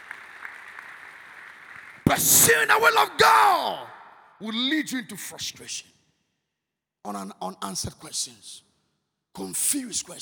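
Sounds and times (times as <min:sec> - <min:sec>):
audience clapping: 0:00.0 - 0:03.1
speech: 0:02.1 - 0:06.0, 0:07.0 - 0:08.7, 0:09.4 - 0:10.2.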